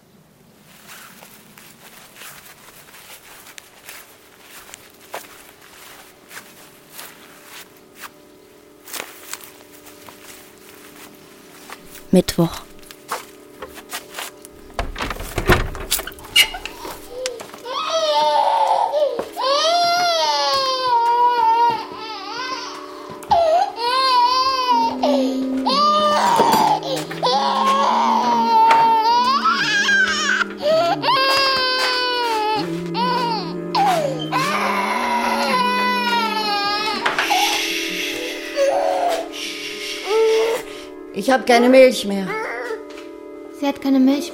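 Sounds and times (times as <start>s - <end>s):
speech: 12.2s - 12.7s, 41.5s - 42.4s, 43.7s - 44.3s
infant crying: 16.2s - 40.9s, 42.2s - 42.8s.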